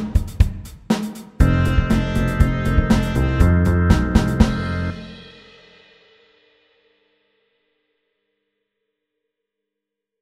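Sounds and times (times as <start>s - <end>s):
eight bar blues music: 1.4s - 5.3s.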